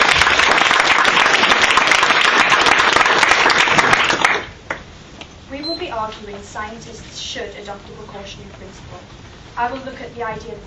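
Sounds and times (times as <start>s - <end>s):
audience applause: 0.0s - 4.6s
speech: 6.0s - 10.6s.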